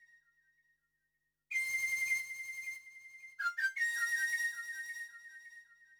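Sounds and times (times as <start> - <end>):
ethnic flute in C: 1.5 - 5.9.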